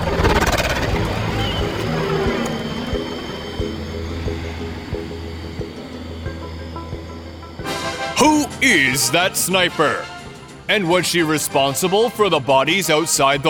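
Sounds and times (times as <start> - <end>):
gunships droning overhead: 0.0 - 12.0
speech: 8.2 - 10.1, 10.7 - 13.4.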